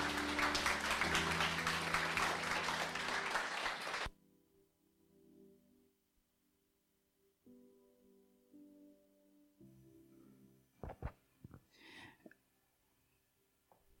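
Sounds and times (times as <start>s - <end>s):
audience clapping: 0.0s - 4.1s.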